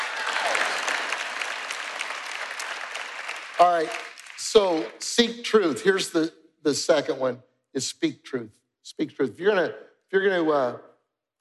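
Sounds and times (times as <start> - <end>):
audience applause: 0.0 - 5.0
speech: 3.6 - 10.9.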